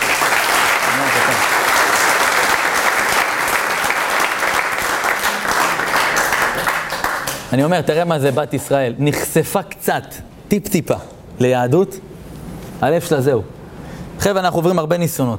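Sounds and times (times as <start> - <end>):
audience applause: 0.0 - 7.5
speech: 7.5 - 12.1, 12.8 - 13.6, 14.2 - 15.3.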